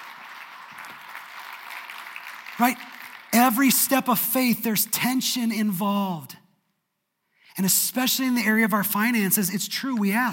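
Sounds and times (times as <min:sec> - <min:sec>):
audience applause: 0:00.0 - 0:03.7
speech: 0:02.6 - 0:06.4, 0:07.6 - 0:10.3.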